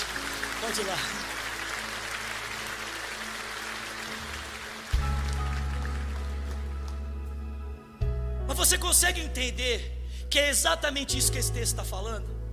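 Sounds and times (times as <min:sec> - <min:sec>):
audience applause: 0:00.0 - 0:07.2
speech: 0:00.6 - 0:01.4, 0:08.7 - 0:12.4.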